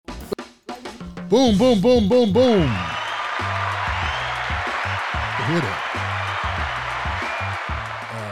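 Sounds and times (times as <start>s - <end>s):
speech: 1.3s - 2.9s, 5.5s - 6.0s
laughter: 1.3s - 4.5s
applause: 2.4s - 8.3s.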